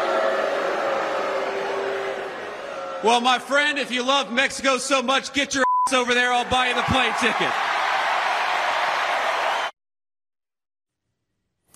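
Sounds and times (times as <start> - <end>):
crowd applause at a rally: 0.0 - 3.5, 6.4 - 9.7
speech: 3.0 - 7.6.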